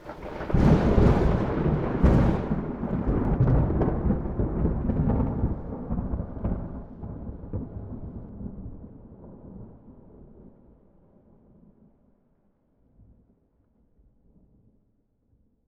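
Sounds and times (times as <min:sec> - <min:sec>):
thunder: 0:00.0 - 0:12.0.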